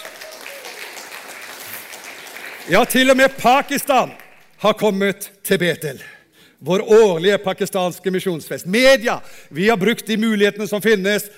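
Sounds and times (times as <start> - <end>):
audience applause: 0.0 - 3.2, 4.1 - 4.6
speech: 2.6 - 11.3.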